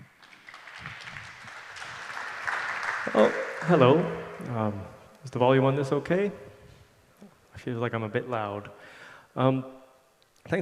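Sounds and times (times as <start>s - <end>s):
audience applause: 0.0s - 4.5s
speech: 3.1s - 6.5s, 7.6s - 9.8s.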